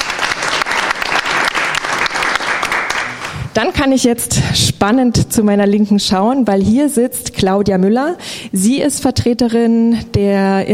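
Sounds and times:
audience applause: 0.0s - 3.5s
speech: 3.6s - 10.7s.

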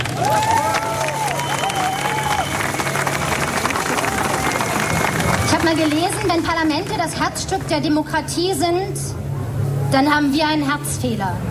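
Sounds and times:
whooping cheers: 0.0s - 5.6s
audience applause: 0.0s - 7.7s
crowd noise: 0.0s - 11.4s
speech: 5.7s - 9.2s, 9.9s - 11.4s.

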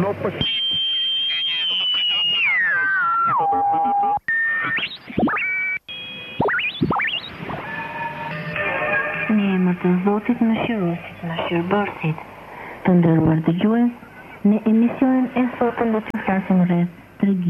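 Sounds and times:
speech: 0.0s - 0.9s, 9.8s - 17.4s
shortwave radio static: 0.0s - 5.5s, 6.4s - 17.4s
garbled shortwave broadcast voices: 0.0s - 5.6s, 6.4s - 17.4s
shortwave radio whistling and tuning sweeps: 0.3s - 12.2s.

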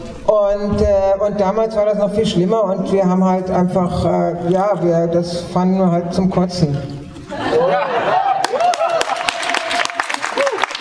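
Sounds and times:
speech: 0.3s - 8.1s
laughter: 7.3s - 10.6s
audience applause: 8.1s - 10.7s.

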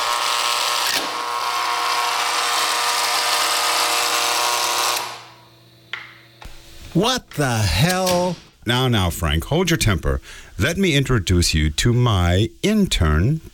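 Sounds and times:
electric buzzer: 0.0s - 6.8s
speech: 7.0s - 13.5s.

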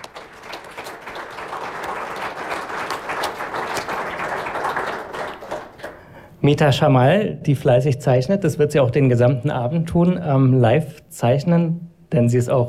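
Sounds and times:
audience applause: 0.0s - 6.1s
speech: 6.4s - 12.6s.

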